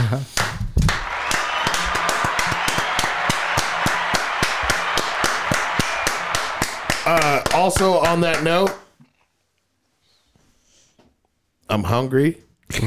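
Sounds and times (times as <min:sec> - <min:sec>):
speech: 0:00.1 - 0:00.3, 0:07.6 - 0:08.8, 0:11.7 - 0:12.8
slow clap: 0:00.3 - 0:08.9.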